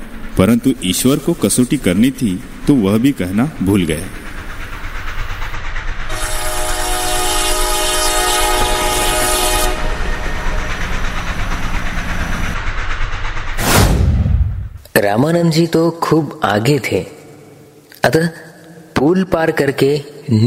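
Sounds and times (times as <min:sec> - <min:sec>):
approaching train: 0:00.0 - 0:17.8
speech: 0:00.4 - 0:04.2, 0:15.0 - 0:17.2, 0:18.0 - 0:18.4, 0:19.0 - 0:20.4
train horn: 0:06.1 - 0:10.7.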